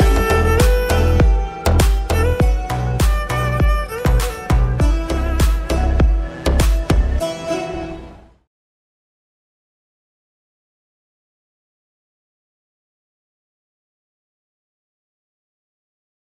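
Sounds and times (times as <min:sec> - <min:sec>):
violin: 0:00.0 - 0:08.4.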